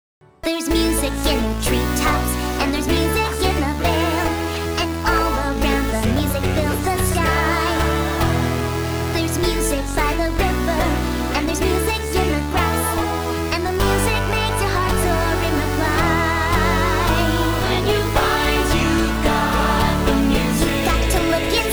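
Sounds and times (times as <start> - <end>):
chiptune cover: 0.7 - 21.7.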